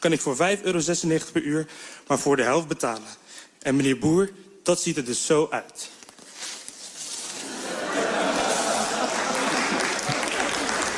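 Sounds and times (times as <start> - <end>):
speech: 0.0 - 6.0
laughter: 7.4 - 10.9
applause at a shareholders' meeting: 8.3 - 10.9.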